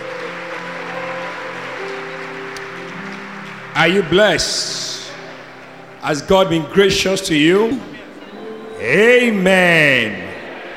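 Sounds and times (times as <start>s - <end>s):
audience clapping: 0.0s - 7.9s
sustained organ-like tones: 0.0s - 10.7s
speech: 3.8s - 5.0s, 6.0s - 7.9s, 8.8s - 10.2s.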